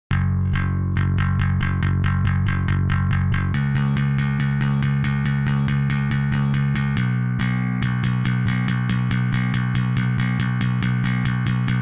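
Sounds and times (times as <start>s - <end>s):
bass: 0.0s - 11.8s.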